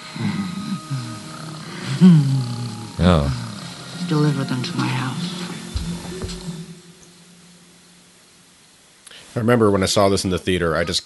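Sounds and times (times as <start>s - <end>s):
cat purring: 0.0s - 6.6s
speech: 2.0s - 2.4s, 3.0s - 3.4s, 4.1s - 5.3s, 9.4s - 11.0s.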